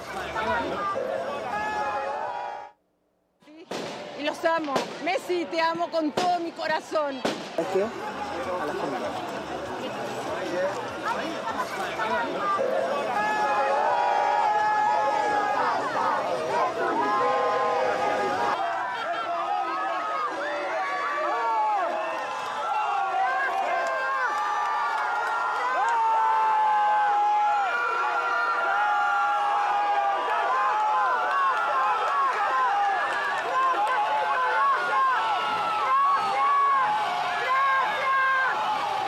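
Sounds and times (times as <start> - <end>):
crowd shouting thanks and cheering: 0.0 - 2.8, 4.2 - 39.0
speech: 0.4 - 1.1, 4.2 - 9.4.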